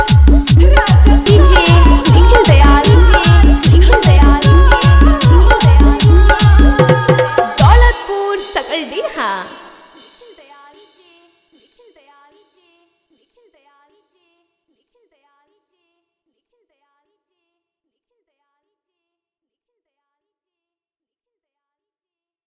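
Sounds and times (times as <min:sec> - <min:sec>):
Bhojpuri love song: 0:00.0 - 0:11.2.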